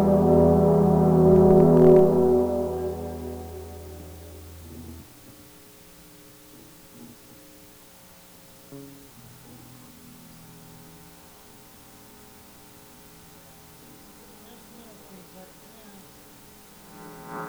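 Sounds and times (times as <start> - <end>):
overdriven monitor mix: 0.0 - 5.1, 16.8 - 17.4.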